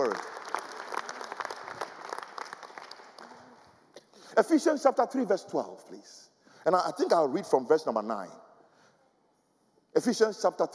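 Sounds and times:
audience clapping: 0.0s - 4.0s
speech: 4.4s - 8.4s, 10.0s - 10.7s.

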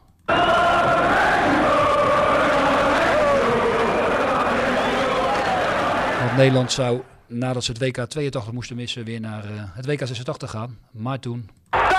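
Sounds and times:
stadium crowd cheering: 0.3s - 7.1s, 11.8s - 11.9s
speech: 6.4s - 11.6s.

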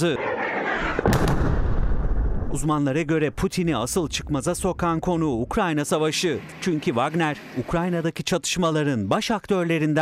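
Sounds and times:
speech: 0.0s - 1.2s, 2.5s - 10.0s
explosions from military helicopter bombing footage: 0.6s - 5.6s
dense low-end rumbling noise: 0.6s - 6.6s.

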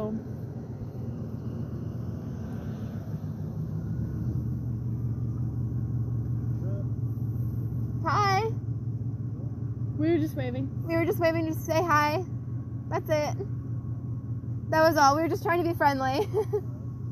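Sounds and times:
rusty truck engine rumble driving by: 0.0s - 17.1s
speech: 10.0s - 12.3s, 12.9s - 13.6s, 14.7s - 16.7s.

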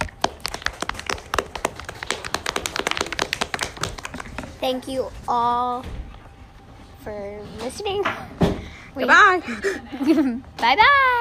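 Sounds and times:
small group clapping hands: 0.0s - 4.7s
speech: 4.6s - 6.0s, 7.0s - 8.4s, 9.0s - 11.1s.

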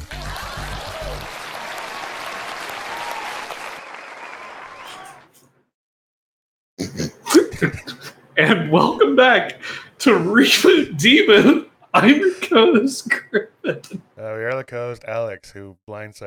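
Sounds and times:
applause: 0.0s - 5.4s
speech: 7.6s - 16.2s.

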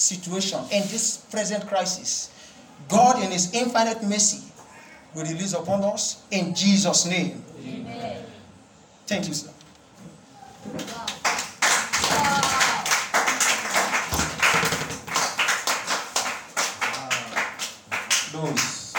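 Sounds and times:
speech: 0.0s - 4.5s, 5.2s - 8.1s, 9.1s - 9.6s
audience clapping: 10.8s - 18.9s.

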